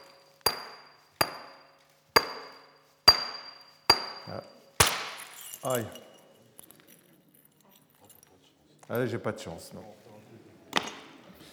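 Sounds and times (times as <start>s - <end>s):
flint knapping stone-on-stone strikes flaking a core: 0.0s - 6.2s
speech: 4.3s - 4.6s, 5.6s - 6.1s, 8.9s - 10.0s.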